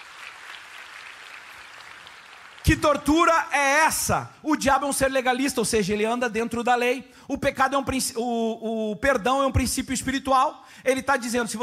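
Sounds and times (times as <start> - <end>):
audience applauding actors after a performance: 0.0 - 3.3
speech: 2.6 - 11.6.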